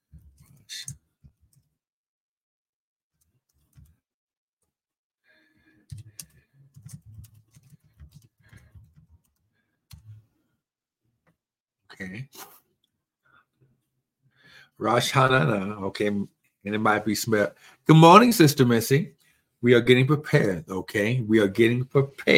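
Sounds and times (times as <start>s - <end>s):
typing on a keyboard: 5.8s - 10.1s
speech: 12.0s - 12.5s, 14.8s - 22.3s.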